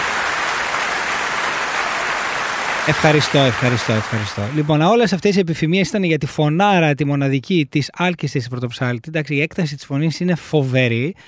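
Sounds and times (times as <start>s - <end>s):
audience applause: 0.0s - 5.0s
speech: 2.9s - 11.2s.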